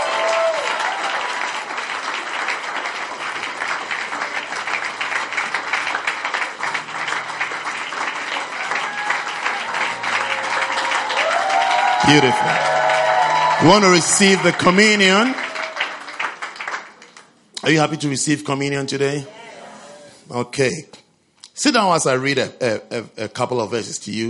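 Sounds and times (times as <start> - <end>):
audience applauding at a church service: 0.0 - 17.8
speech: 12.1 - 12.7, 13.6 - 15.4, 17.6 - 19.4, 20.3 - 21.0, 21.6 - 24.2.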